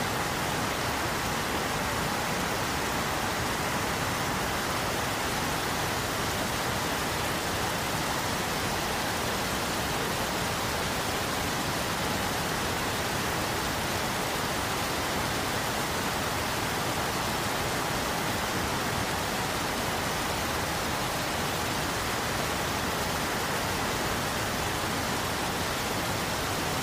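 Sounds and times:
rain white noise: 0:00.0 - 0:26.8.

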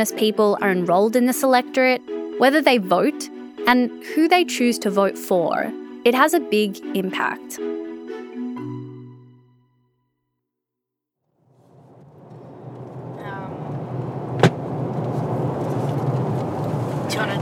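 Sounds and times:
speech: 0:00.0 - 0:07.8
car driving out to Minyiri in southeast Arnhem Land: 0:11.5 - 0:17.4.

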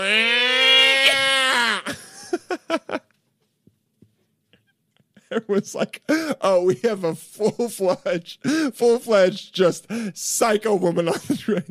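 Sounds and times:
person imitating a cat in heat: 0:00.0 - 0:01.9
speech: 0:05.3 - 0:11.6.

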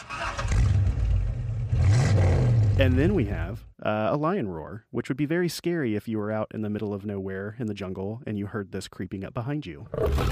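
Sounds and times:
car engine starting up: 0:00.0 - 0:03.6
speech: 0:02.8 - 0:10.3.

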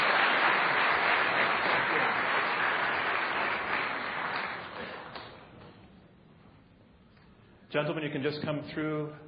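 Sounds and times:
audience applause welcoming debaters: 0:00.0 - 0:05.5
speech: 0:07.7 - 0:09.2.

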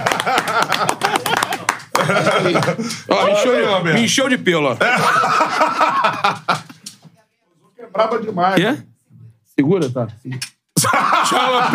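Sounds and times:
clapping: 0:00.0 - 0:02.8
laughter: 0:00.0 - 0:03.8, 0:04.6 - 0:07.0, 0:10.8 - 0:11.7
speech: 0:00.2 - 0:01.5, 0:02.1 - 0:06.6, 0:08.0 - 0:08.9, 0:09.6 - 0:11.7.

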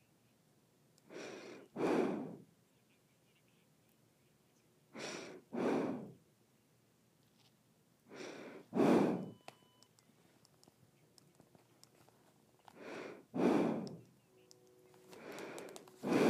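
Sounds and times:
nose breathing: 0:01.1 - 0:02.5, 0:05.0 - 0:06.2, 0:08.1 - 0:09.4, 0:12.7 - 0:14.1, 0:15.1 - 0:16.2.

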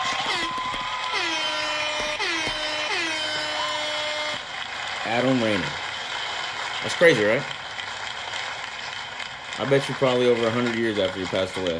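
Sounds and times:
air horn sound effect: 0:00.1 - 0:04.4
speech: 0:05.1 - 0:05.8, 0:06.8 - 0:07.6, 0:09.6 - 0:11.7.

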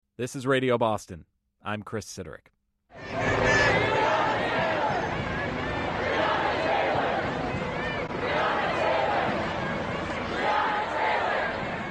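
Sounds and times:
speech: 0:00.2 - 0:02.5
hundreds of protesters marching in Boston for Breonna Taylor: 0:02.9 - 0:11.9.

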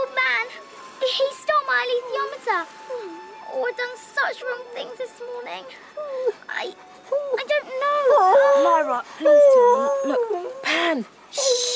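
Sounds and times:
speech: 0:01.1 - 0:03.0, 0:03.6 - 0:11.7
wolf whimpering and whining in a radio drama: 0:08.0 - 0:10.8.

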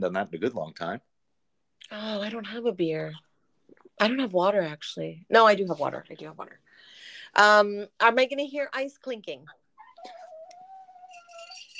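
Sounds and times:
speech: 0:00.0 - 0:01.1, 0:01.8 - 0:03.3, 0:04.0 - 0:06.6, 0:07.3 - 0:10.2
dog whining: 0:09.8 - 0:11.7.

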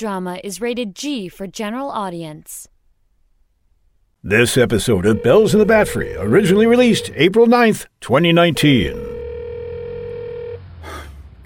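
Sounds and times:
speech: 0:00.0 - 0:02.7, 0:04.2 - 0:09.2
electronic telephone tone: 0:04.8 - 0:07.3, 0:08.8 - 0:10.6.

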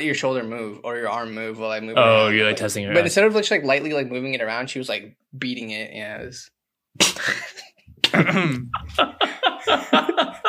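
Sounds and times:
speech: 0:00.0 - 0:07.5, 0:08.1 - 0:10.4
person sneezing: 0:07.0 - 0:08.8
person laughing: 0:07.0 - 0:10.4.

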